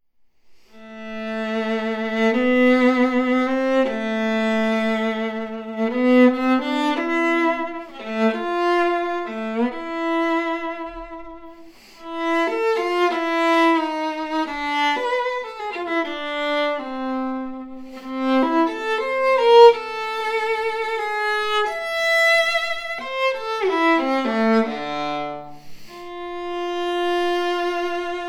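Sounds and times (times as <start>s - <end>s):
viola: 0.7s - 28.2s.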